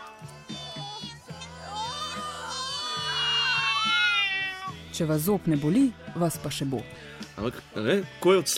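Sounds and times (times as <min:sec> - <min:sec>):
cries of pain at the dentist: 0:00.5 - 0:04.8
speech: 0:05.0 - 0:08.5.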